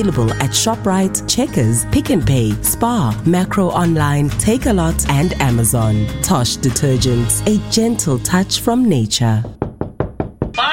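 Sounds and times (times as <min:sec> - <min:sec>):
speech: 0:00.0 - 0:09.6
knocks and thuds: 0:09.4 - 0:10.6.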